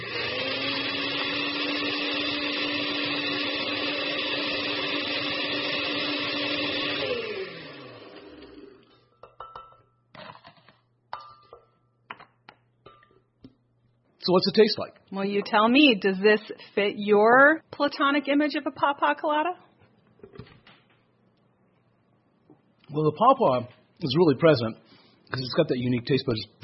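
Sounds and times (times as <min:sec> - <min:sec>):
blender crushing ice for a cocktail: 0:00.0 - 0:08.9
speech: 0:14.3 - 0:19.6, 0:22.9 - 0:26.6.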